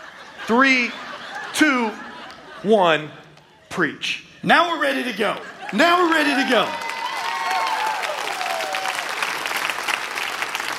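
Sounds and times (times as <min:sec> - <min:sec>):
laughter: 0:00.0 - 0:03.8, 0:04.6 - 0:06.8
speech: 0:00.5 - 0:02.0, 0:02.6 - 0:03.2, 0:03.8 - 0:06.8
audience clapping: 0:05.6 - 0:10.7
faint whoops: 0:06.4 - 0:09.1.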